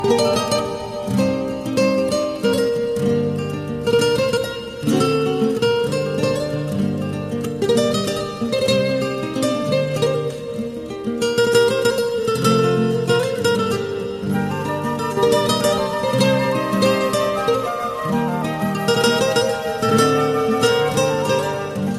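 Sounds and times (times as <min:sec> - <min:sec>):
Iranian music: 0:00.0 - 0:21.9.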